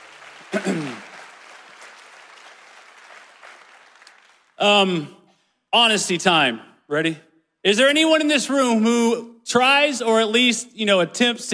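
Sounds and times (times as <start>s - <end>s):
audience applause: 0.0s - 4.6s
speech: 0.5s - 1.1s, 4.6s - 11.5s.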